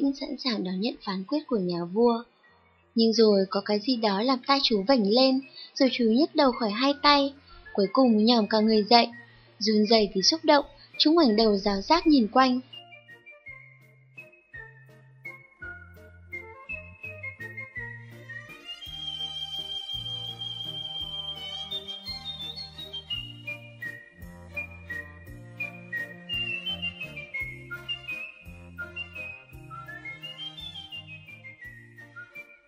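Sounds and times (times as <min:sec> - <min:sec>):
speech: 0:00.0 - 0:02.3, 0:03.0 - 0:12.8
whistled notes imitating a nightingale's song: 0:03.1 - 0:32.6
low instrumental accompaniment: 0:12.6 - 0:32.6.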